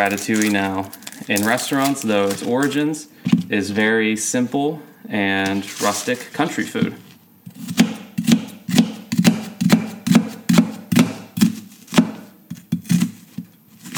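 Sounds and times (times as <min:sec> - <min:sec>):
speech: 0:00.0 - 0:07.0
knife finely chopping onion on a board for ratatouille: 0:06.8 - 0:13.9.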